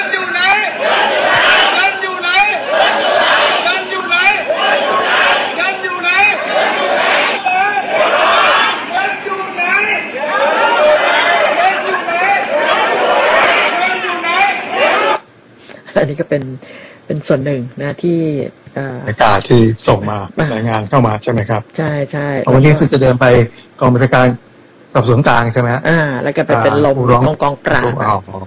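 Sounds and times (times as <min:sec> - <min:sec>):
villagers chattering: 0:00.0 - 0:15.3
speech: 0:16.0 - 0:28.4.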